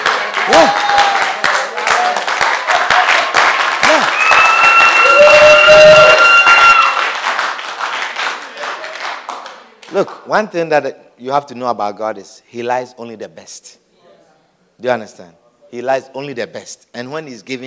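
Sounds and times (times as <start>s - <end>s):
audience clapping: 0.0s - 10.3s
speech: 10.0s - 13.8s, 14.8s - 17.6s.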